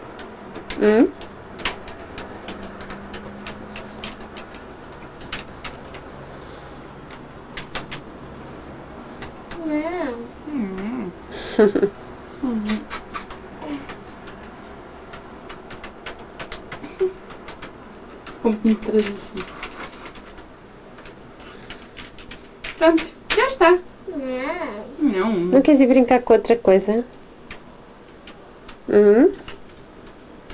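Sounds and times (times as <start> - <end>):
typing on a computer keyboard: 0.0 - 8.1, 9.2 - 10.9, 12.5 - 23.8, 29.4 - 30.5
speech: 0.8 - 1.2, 11.6 - 12.0, 18.6 - 19.6, 22.8 - 23.9, 25.2 - 27.2, 28.9 - 29.4.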